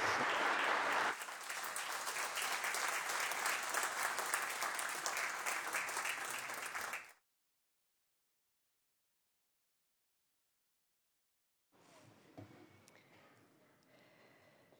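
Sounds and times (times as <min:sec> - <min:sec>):
chamber audience applauding: 0:00.0 - 0:07.2.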